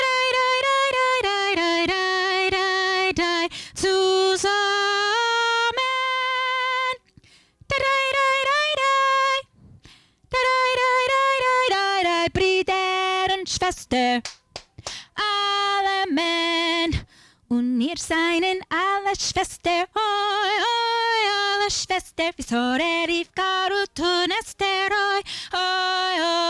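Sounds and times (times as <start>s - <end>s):
soprano singing: 0.0s - 7.1s, 7.7s - 9.5s, 10.3s - 14.3s, 15.1s - 26.4s.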